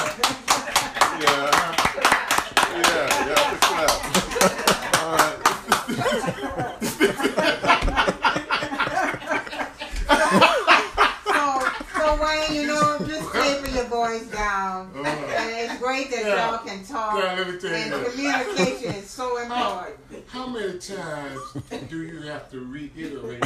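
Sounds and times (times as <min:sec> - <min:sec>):
people clapping: 0:00.0 - 0:13.9
people chuckling and laughing: 0:00.0 - 0:16.6, 0:17.6 - 0:19.8, 0:21.1 - 0:22.4, 0:23.0 - 0:23.4
speech: 0:22.4 - 0:23.4.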